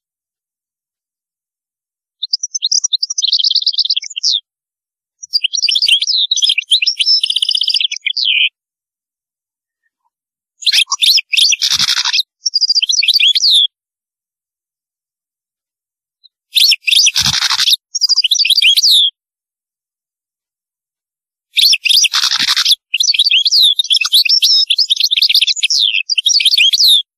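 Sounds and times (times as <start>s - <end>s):
European goldfinch twittering: 2.2s - 4.4s, 5.2s - 8.5s, 10.6s - 13.7s, 16.6s - 19.1s, 21.6s - 27.1s.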